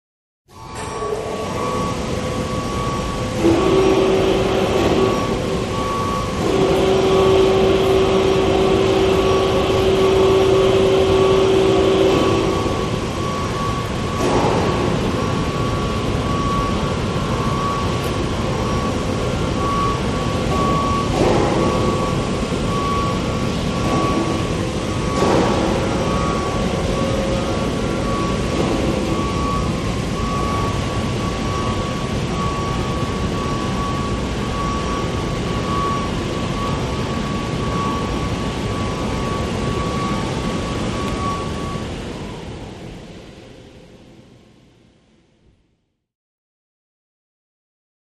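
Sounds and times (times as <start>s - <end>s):
forklifts lifting: 0.6s - 42.6s
warehouse motor noise: 0.6s - 42.8s
warehouse fan noise: 0.6s - 45.7s
constant backup beep: 0.8s - 42.4s.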